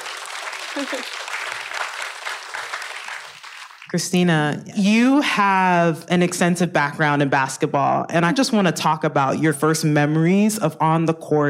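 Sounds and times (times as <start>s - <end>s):
audience round of applause: 0.0s - 3.9s
speech: 0.8s - 1.2s, 3.9s - 11.4s.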